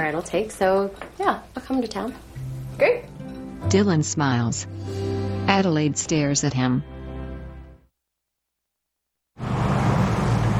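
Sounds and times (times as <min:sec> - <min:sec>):
speech: 0:00.1 - 0:06.9
truck driving up and stopping: 0:09.4 - 0:10.5.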